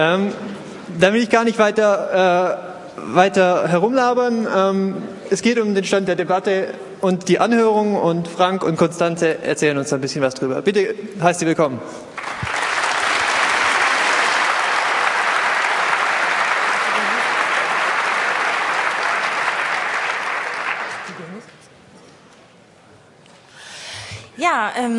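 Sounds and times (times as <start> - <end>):
speech: 0.0 - 12.3, 24.5 - 24.9
audience applause: 12.2 - 21.4.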